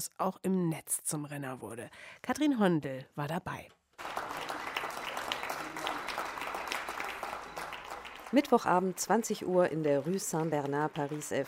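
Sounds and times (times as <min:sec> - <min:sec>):
speech: 0:00.0 - 0:04.2, 0:08.3 - 0:11.4
applause from balconies for nurses in Paris: 0:04.0 - 0:11.4.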